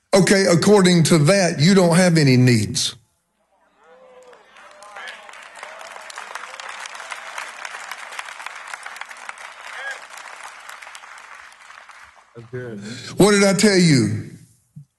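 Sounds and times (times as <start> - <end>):
speech: 0.2 - 3.0, 12.6 - 14.4
audience clapping: 3.8 - 12.8.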